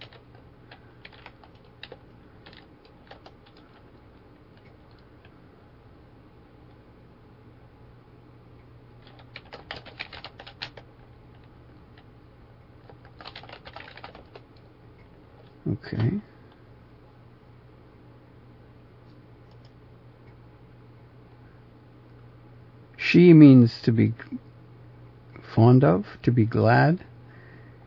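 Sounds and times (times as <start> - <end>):
typing on a computer keyboard: 0.0 - 5.1, 9.0 - 12.0, 12.8 - 14.4, 19.4 - 19.8
low steady hum: 0.0 - 27.8
speech: 15.8 - 16.3, 23.1 - 24.5, 25.6 - 27.1.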